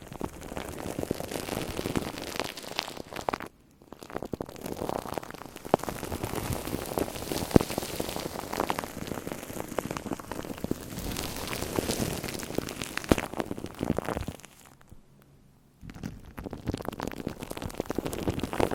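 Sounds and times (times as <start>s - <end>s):
shaving cream fizzing and crackling against a microphone: 0.0s - 15.0s, 15.8s - 18.7s.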